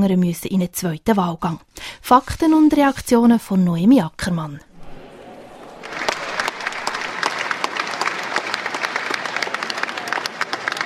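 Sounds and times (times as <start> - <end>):
speech: 0.0 - 4.7
applause at election result announcement: 5.1 - 10.8.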